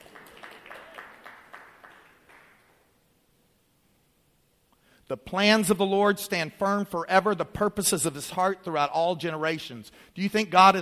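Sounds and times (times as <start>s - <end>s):
audience clapping: 0.0s - 2.9s
speech: 5.1s - 10.8s.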